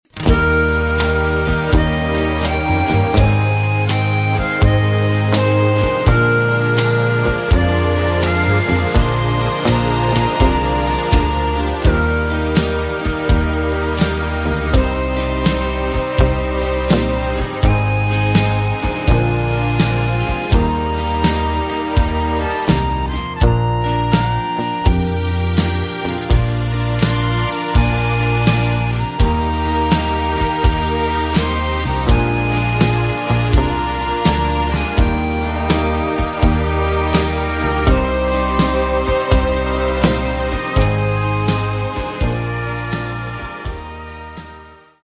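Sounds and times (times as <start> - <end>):
backing track without backing vocals: 0.0 - 45.0.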